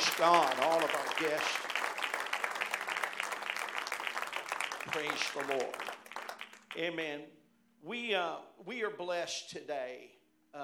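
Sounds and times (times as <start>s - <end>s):
audience clapping hands: 0.0s - 6.9s
speech: 0.2s - 1.8s, 4.9s - 6.0s, 6.8s - 10.6s.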